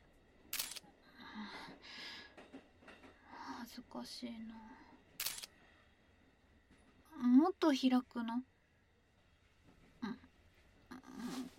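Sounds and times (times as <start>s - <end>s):
camera shutter clicks: 0.6s - 0.8s, 5.2s - 5.5s
speech: 3.7s - 4.8s, 7.4s - 8.5s.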